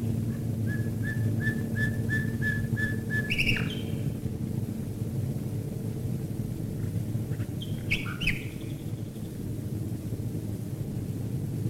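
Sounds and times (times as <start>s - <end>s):
low droning hum: 0.0s - 11.6s
common nightingale singing: 0.6s - 4.1s, 7.6s - 9.1s.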